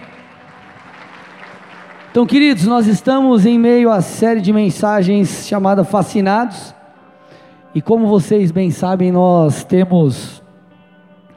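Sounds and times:
crowd applause: 0.0 - 3.0
speech: 2.1 - 6.8, 7.7 - 10.4.

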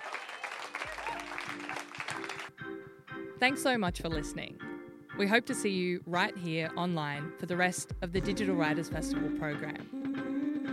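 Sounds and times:
audience applause: 0.0 - 2.6
speech: 3.4 - 10.0.

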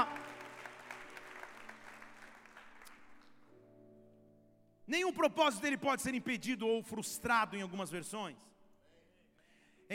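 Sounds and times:
audience applause: 0.0 - 3.5
speech: 4.9 - 8.5.

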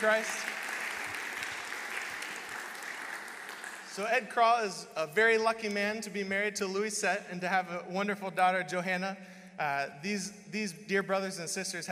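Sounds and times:
speech: 0.0 - 0.6, 4.0 - 11.9
audience round of applause: 0.0 - 4.2.

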